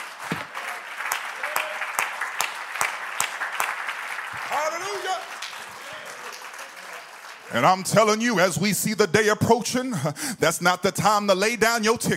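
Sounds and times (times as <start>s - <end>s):
crowd clapping hands in steady rhythm: 0.0s - 8.6s
speech: 4.7s - 5.4s, 7.5s - 12.1s.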